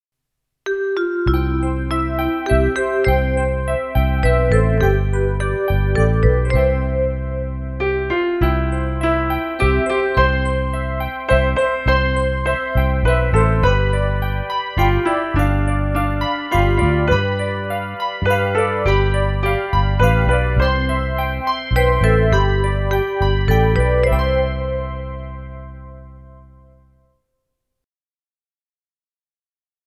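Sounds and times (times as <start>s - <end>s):
instrumental music without vocals: 0.7s - 27.0s.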